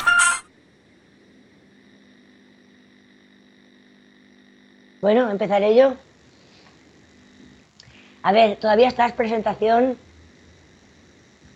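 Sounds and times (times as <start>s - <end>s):
telephone ringing: 0.0s - 0.4s
speech: 5.0s - 6.1s, 8.2s - 10.1s.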